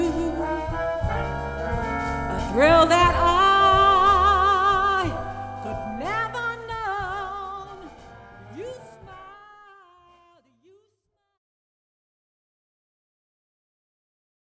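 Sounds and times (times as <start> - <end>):
jazz combo with vocals: 0.0 - 10.4.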